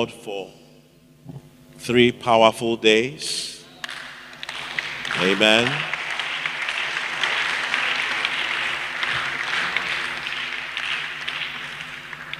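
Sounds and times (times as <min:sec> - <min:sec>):
speech: 0:00.0 - 0:00.6, 0:01.2 - 0:03.6, 0:05.2 - 0:06.0
audience applauding: 0:03.8 - 0:12.3.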